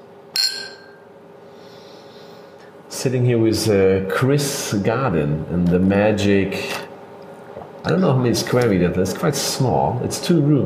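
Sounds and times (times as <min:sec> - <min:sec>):
glasses clinking in a toast: 0:00.4 - 0:01.0
speech: 0:03.0 - 0:06.8, 0:07.8 - 0:10.6.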